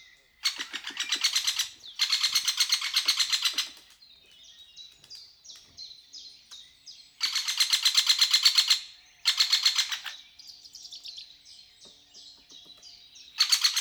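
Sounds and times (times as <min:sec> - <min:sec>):
great spotted woodpecker calling: 0:00.0 - 0:05.7, 0:06.5 - 0:13.8.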